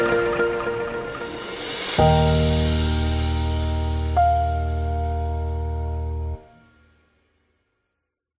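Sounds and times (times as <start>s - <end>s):
luxury background music: 0.0s - 6.6s.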